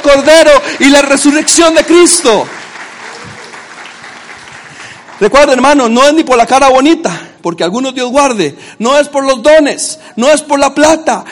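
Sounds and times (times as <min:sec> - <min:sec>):
speech: 0:00.0 - 0:02.6, 0:05.2 - 0:11.3
audience applauding: 0:00.0 - 0:06.2.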